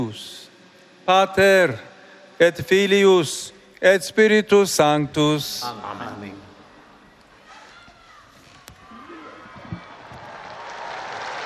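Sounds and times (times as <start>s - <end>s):
speech: 0.0s - 0.5s, 1.1s - 6.5s
crowd applause in a large public square: 8.9s - 11.4s.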